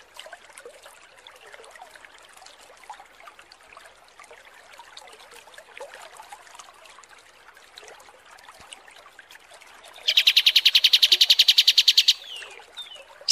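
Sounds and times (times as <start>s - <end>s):
Kapas tembak bird high rapid trill: 10.1s - 12.5s.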